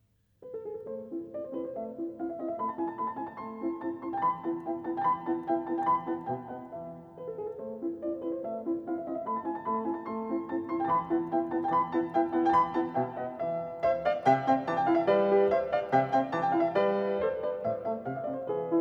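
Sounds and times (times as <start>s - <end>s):
piano sonata in A major allegretto: 0.0s - 18.7s.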